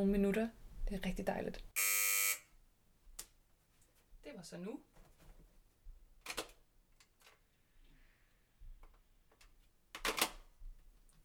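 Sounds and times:
speech: 0.0 - 1.8, 4.4 - 4.9
doorbell buzzer ringing: 1.8 - 2.5.

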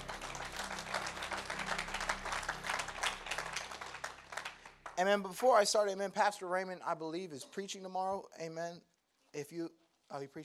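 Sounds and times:
audience clapping: 0.0 - 5.9
speech: 5.0 - 10.4.

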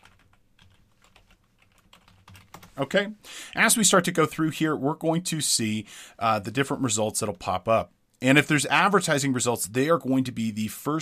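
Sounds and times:
faint typing on a computer keyboard entering a search query: 0.0 - 2.7
speech: 2.8 - 11.0.

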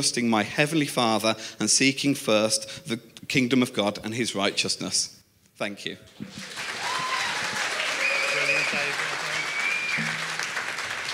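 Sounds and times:
speech: 0.0 - 6.9
audience applause: 6.2 - 11.1.

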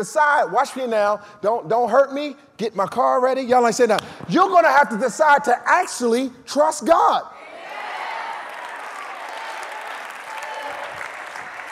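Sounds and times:
speech: 0.0 - 7.4
audience shouting and cheering: 7.4 - 11.6.

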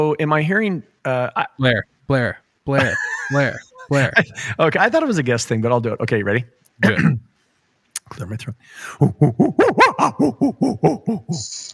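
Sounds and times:
speech: 0.0 - 7.3, 8.1 - 11.7
person imitating a happy chimpanzee: 9.0 - 11.6.

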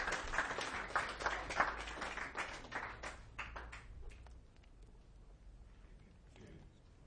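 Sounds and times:
audience applause: 0.0 - 4.2.

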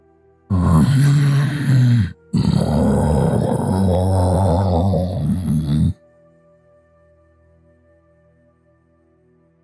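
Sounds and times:
monster growl sound effect: 0.5 - 6.0.

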